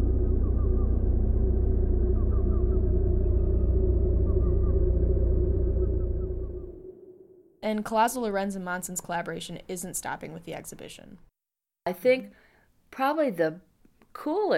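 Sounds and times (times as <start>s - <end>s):
faint chirping tones in a sound art installation: 0.0s - 7.6s
low pulsing rumble of a sound art installation inspired by submarine transmitters: 0.0s - 7.6s
speech: 7.7s - 11.3s, 11.9s - 14.5s.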